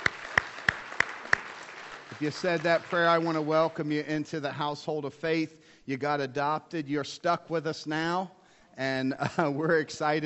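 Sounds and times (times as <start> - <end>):
audience clapping: 0.0 - 4.1
speech: 2.2 - 10.2.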